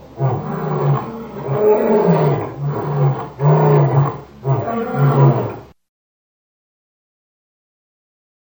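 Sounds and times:
lion roaring grunts: 0.0s - 5.6s.

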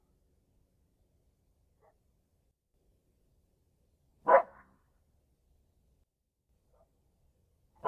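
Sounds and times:
coyote barks: 4.2s - 4.6s.

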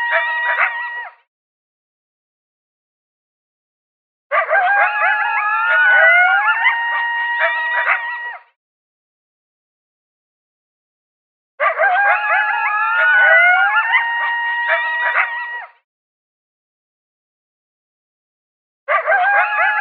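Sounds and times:
coyotes howling and yipping: 0.0s - 1.2s, 4.3s - 8.5s, 11.6s - 15.8s, 18.9s - 19.8s.

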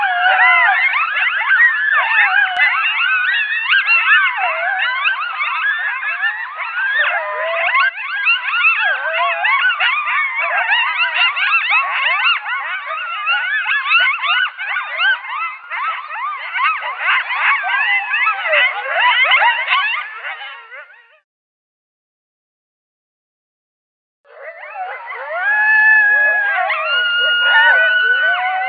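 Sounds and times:
coyote yipping chorus: 0.0s - 21.2s, 24.3s - 28.6s.

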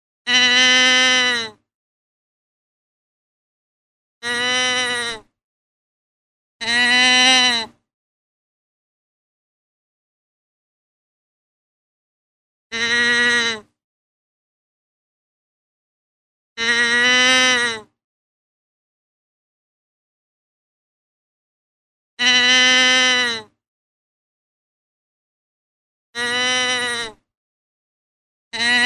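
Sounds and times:
deer bleating: 0.3s - 1.4s, 4.2s - 5.2s, 6.6s - 7.6s, 12.7s - 13.7s, 16.6s - 17.9s, 22.2s - 23.5s, 26.2s - 27.2s, 28.6s - 28.8s.

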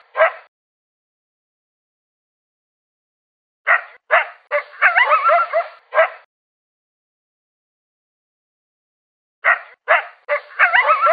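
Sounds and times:
coyote barking and yelping: 3.7s - 6.3s, 9.4s - 11.1s.

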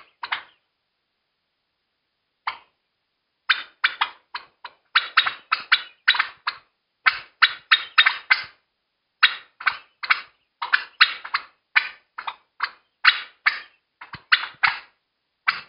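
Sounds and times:
turkey panic calling: 0.0s - 0.6s, 2.4s - 2.8s, 3.5s - 8.6s, 9.2s - 15.6s.

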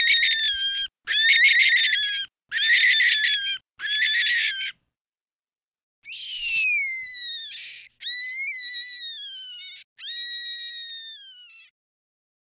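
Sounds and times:
cottontail rabbit distress calls: 0.0s - 4.7s, 6.0s - 11.7s.

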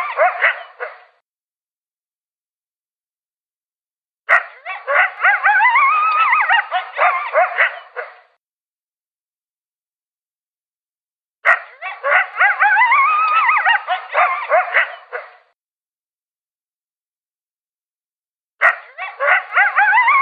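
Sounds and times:
coyote yipping and howling: 0.0s - 1.1s, 4.3s - 8.2s, 11.7s - 15.4s, 18.6s - 20.1s.

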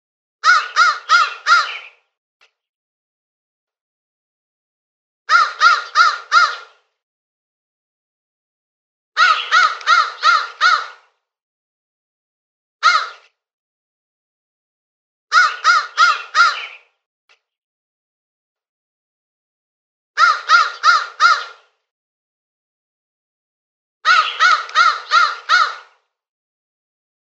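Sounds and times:
crow uttering rasping caws: 0.4s - 2.0s, 5.3s - 6.8s, 9.2s - 11.1s, 12.8s - 13.3s, 15.3s - 16.9s, 20.2s - 21.7s, 24.0s - 26.0s.

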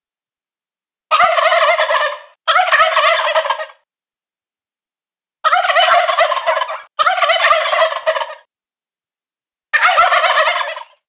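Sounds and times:
adult male wild turkey gobbling: 1.1s - 3.8s, 5.4s - 8.5s, 9.8s - 11.0s.

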